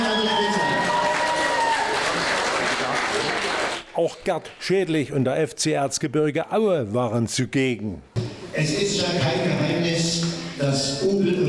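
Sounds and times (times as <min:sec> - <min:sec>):
cheers and whistles: 0:00.0 - 0:02.1
large crowd applause: 0:00.0 - 0:04.0
speech: 0:04.0 - 0:11.4.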